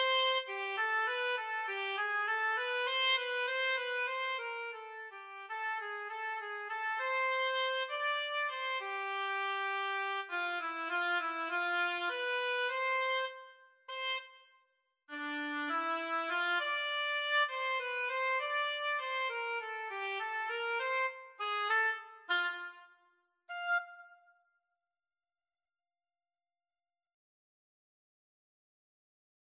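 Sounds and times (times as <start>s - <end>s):
oboe playing a rag: 0.0s - 14.4s, 15.1s - 24.3s.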